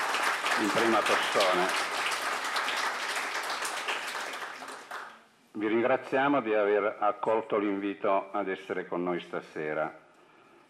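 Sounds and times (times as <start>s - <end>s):
audience applause: 0.0s - 5.2s
speech: 0.6s - 1.9s, 5.6s - 10.0s.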